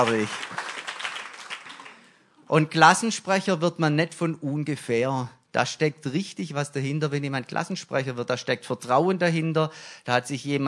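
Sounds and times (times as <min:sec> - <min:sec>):
speech: 0:00.0 - 0:00.7, 0:02.5 - 0:10.6
audience applause: 0:00.0 - 0:02.2.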